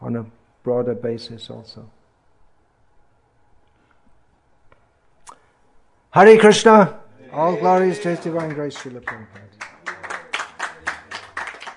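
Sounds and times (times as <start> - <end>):
speech: 0.1 - 2.0, 6.1 - 9.6
hands clapping: 7.7 - 11.7.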